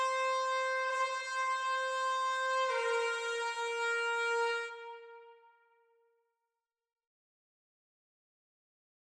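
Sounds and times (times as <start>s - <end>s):
trumpet: 0.0s - 5.8s.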